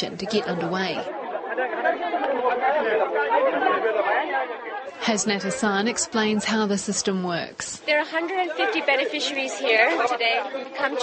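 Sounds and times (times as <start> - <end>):
laughter: 0.0 - 6.2, 8.0 - 11.0
crowd chattering while waiting for food vouchers: 0.0 - 11.0
speech: 0.0 - 11.0.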